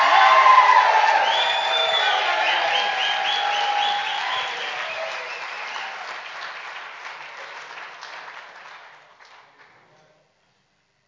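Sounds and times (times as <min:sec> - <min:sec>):
people whooping and cheering: 0:00.0 - 0:06.6
audience standing ovation applause: 0:00.0 - 0:09.8.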